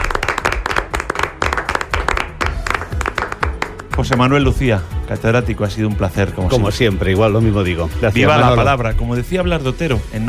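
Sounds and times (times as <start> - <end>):
crowd applauding: 0.0 - 4.6
speech: 4.0 - 10.2.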